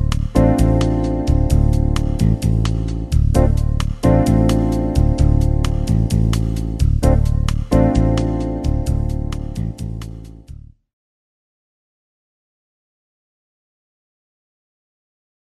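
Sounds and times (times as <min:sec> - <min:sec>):
backing track for improvisation practice: 0:00.0 - 0:10.5.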